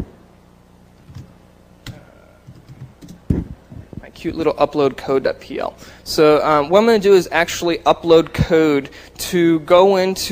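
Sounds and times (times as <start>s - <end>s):
typing on a computer keyboard: 1.1s - 3.2s
speech: 4.2s - 10.3s.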